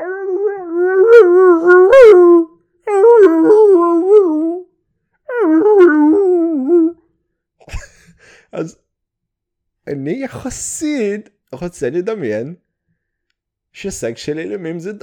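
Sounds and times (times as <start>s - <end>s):
husky dog howling: 0.0s - 4.7s, 5.3s - 7.0s
speech: 8.6s - 8.8s, 9.9s - 12.6s, 13.8s - 15.0s.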